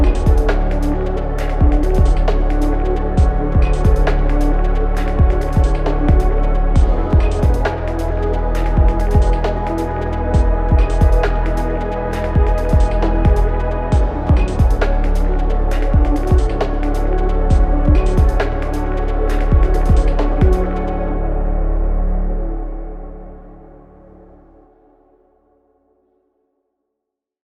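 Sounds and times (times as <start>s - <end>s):
electronic ambient zen music: 0.0s - 25.2s.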